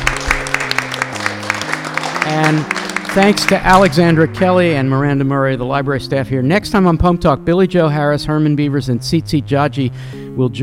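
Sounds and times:
live audience applause: 0.0 - 4.3
speech: 2.3 - 10.6.

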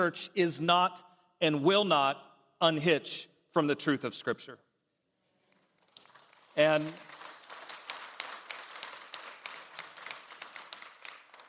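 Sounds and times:
speech: 0.0 - 4.6, 6.6 - 7.2
church congregation clapping: 5.5 - 11.4.

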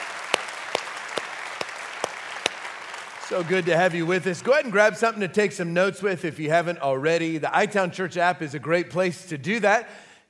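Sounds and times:
sharp loud claps: 0.0 - 4.1
church congregation clapping: 0.0 - 4.8
speech: 3.3 - 10.2.

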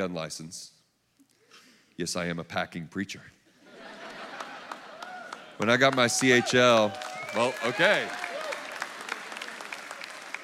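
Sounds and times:
speech: 0.0 - 0.8, 2.0 - 3.4, 5.6 - 8.2
laughter: 3.6 - 6.1
audience applause: 4.1 - 10.4.

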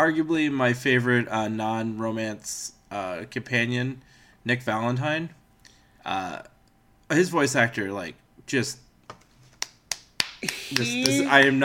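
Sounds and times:
speech: 0.0 - 5.4, 6.0 - 6.5, 7.1 - 8.8, 10.4 - 11.6
hand claps: 9.4 - 11.6.

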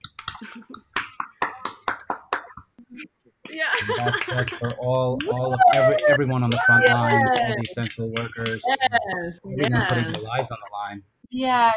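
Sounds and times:
hands clapping: 0.0 - 2.8, 3.5 - 8.8
speech: 0.4 - 0.8, 2.9 - 11.7
laughter: 3.5 - 11.0.

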